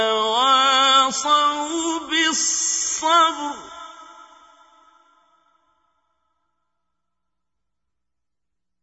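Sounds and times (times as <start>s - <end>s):
qari reciting the Quran: 0.0s - 5.5s.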